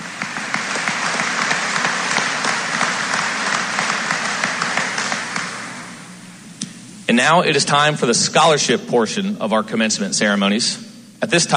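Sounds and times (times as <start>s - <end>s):
audience applause at a high school commencement ceremony: 0.0s - 6.1s
speech: 7.1s - 11.5s.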